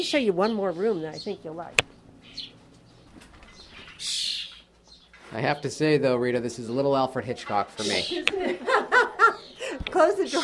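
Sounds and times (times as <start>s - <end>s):
bird chirping in rehab aviary: 0.0s - 1.6s, 2.2s - 5.9s, 6.5s - 8.3s
speech: 0.0s - 2.5s, 5.3s - 8.8s, 9.9s - 10.4s
birds flapping wings in rehab aviary: 2.7s - 4.1s
laughter: 8.1s - 10.4s.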